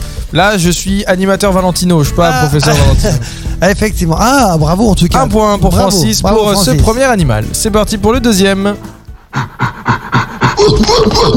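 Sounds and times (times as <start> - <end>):
speech: 0.3 - 10.0, 10.6 - 11.3
gorilla panting grunts and hoots: 9.2 - 11.3.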